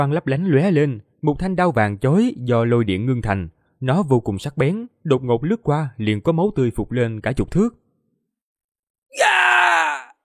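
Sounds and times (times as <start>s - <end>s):
speech: 0.0s - 7.8s, 9.1s - 10.1s
person shouting loudly: 9.1s - 10.2s.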